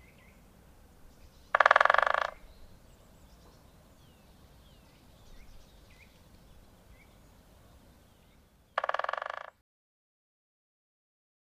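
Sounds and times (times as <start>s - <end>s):
Great spotted woodpecker drumming: 1.5s - 2.5s, 8.8s - 9.6s.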